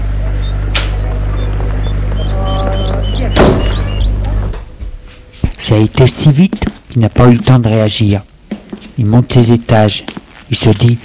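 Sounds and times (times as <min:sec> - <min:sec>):
door closing: 0:00.6 - 0:05.7
speech: 0:05.7 - 0:08.3, 0:09.0 - 0:11.0.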